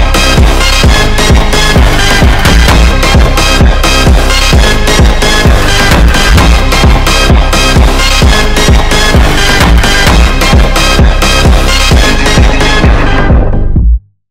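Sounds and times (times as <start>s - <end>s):
drum rhythm: 0.0s - 14.0s.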